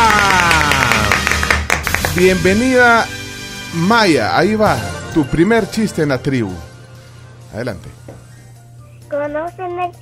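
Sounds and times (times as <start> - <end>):
applause sound effect: 0.0 - 3.0
speech: 2.2 - 6.7, 7.5 - 8.2, 9.1 - 10.0.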